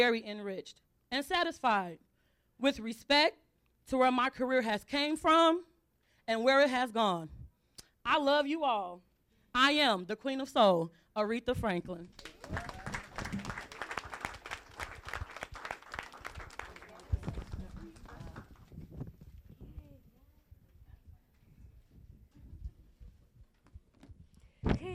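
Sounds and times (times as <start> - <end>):
speech: 0.0 - 5.7, 6.3 - 7.4, 8.0 - 12.7
audience applause: 12.2 - 18.7.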